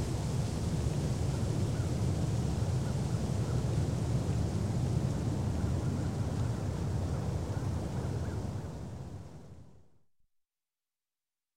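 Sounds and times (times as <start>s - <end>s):
wind through trees: 0.0s - 9.8s.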